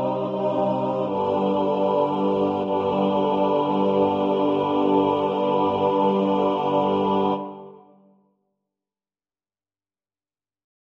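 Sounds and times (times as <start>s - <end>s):
choir: 0.0s - 8.2s.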